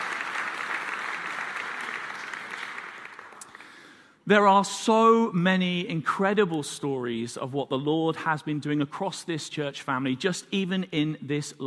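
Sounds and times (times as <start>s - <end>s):
audience applause: 0.0s - 3.8s
speech: 4.3s - 11.6s.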